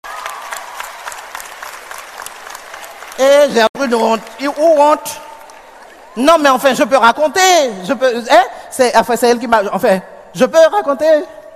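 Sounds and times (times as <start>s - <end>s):
audience applause: 0.0s - 6.2s
speech: 3.2s - 5.3s, 6.2s - 11.4s.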